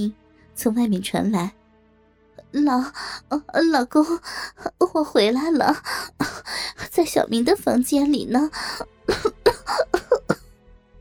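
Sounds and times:
speech: 0.0s - 1.6s, 2.5s - 10.4s
woman's feigned cough: 9.1s - 10.4s.

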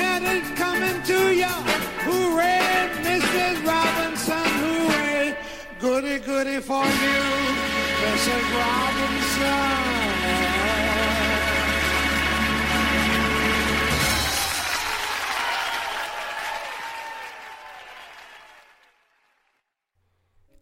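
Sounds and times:
speech: 0.2s - 4.3s, 5.8s - 10.8s
audience applause for a singer and band on a live recording: 9.2s - 19.6s.

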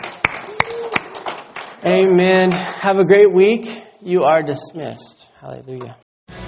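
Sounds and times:
audience clapping: 0.0s - 1.9s
speech: 1.8s - 6.0s.

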